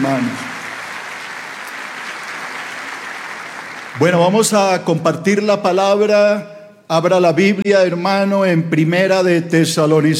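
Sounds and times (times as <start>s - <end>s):
speech: 0.0s - 0.5s, 4.0s - 10.1s
congregation applauding in welcome during a church service: 0.0s - 4.9s.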